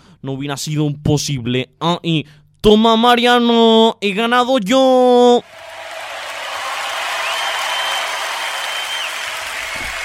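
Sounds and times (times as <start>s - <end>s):
speech: 0.2s - 5.6s
audience applause: 5.4s - 10.0s.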